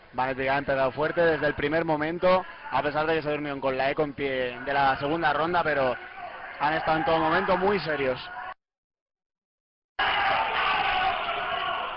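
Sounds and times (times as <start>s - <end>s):
speech: 0.1s - 8.4s
crowd shouting at esports match: 2.4s - 3.1s, 4.6s - 8.6s, 10.0s - 11.9s.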